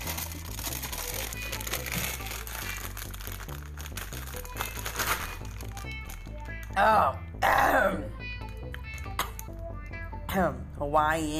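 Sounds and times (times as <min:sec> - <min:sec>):
kettle-style potato chips crunching: 0:00.0 - 0:06.8
speech: 0:06.8 - 0:08.2, 0:10.4 - 0:11.3.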